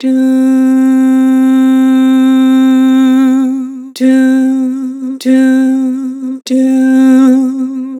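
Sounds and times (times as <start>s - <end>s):
vibrato doo vocals: 0.0s - 7.9s.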